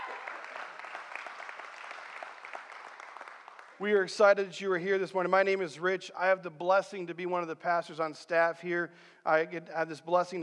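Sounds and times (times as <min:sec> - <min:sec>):
church congregation applauding guests during a Sunday service: 0:00.0 - 0:04.0
speech: 0:03.8 - 0:10.4.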